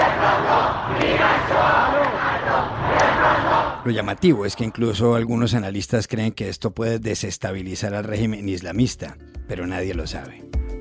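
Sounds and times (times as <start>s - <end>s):
street protest crowd shouting and chanting: 0.0s - 4.8s
speech: 3.8s - 10.5s.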